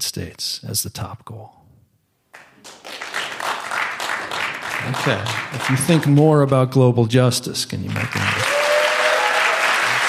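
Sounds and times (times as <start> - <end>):
speech: 0.0 - 1.7, 4.8 - 8.4
audience clapping: 2.3 - 7.0, 7.7 - 10.0.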